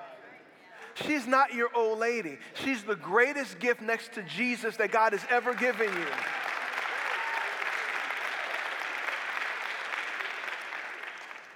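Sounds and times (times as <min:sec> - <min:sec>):
speech: 0:01.0 - 0:06.4
audience clapping: 0:05.0 - 0:11.5.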